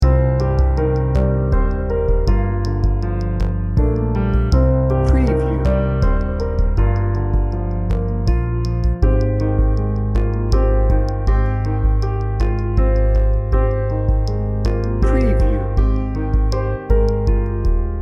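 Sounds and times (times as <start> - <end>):
heartfelt music loop: 0.0 - 18.0.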